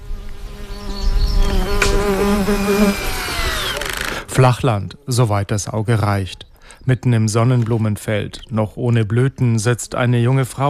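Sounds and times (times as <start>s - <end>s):
drone buzzing during launch in a field: 0.0s - 4.4s
speech: 4.4s - 10.6s.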